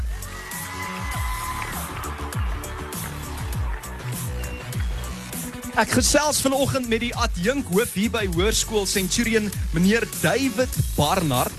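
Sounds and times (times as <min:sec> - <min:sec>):
audience applause: 0:00.0 - 0:05.7
speech: 0:05.8 - 0:11.5.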